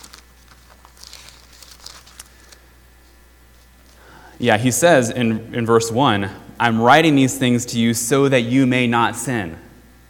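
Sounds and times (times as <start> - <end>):
Bible pages being turned: 0.0 - 4.0
speech: 4.4 - 9.7.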